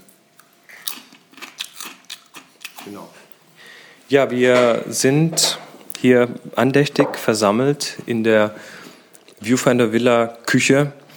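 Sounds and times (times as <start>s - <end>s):
crunching potato chips: 0.7s - 2.9s
speech: 2.8s - 3.3s, 4.1s - 8.8s, 9.4s - 11.0s.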